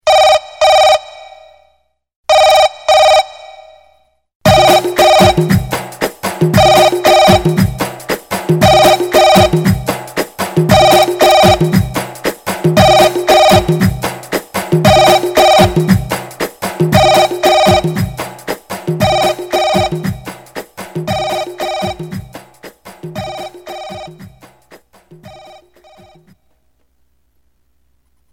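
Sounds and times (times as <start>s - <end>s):
phone ringing: 0.1s - 1.7s, 2.3s - 3.9s, 4.5s - 5.7s, 6.4s - 7.8s, 8.5s - 10.0s, 10.6s - 11.9s, 12.7s - 14.0s, 14.8s - 16.2s, 16.9s - 18.2s, 18.9s - 20.3s, 20.9s - 22.4s, 23.0s - 24.5s, 25.2s - 26.5s.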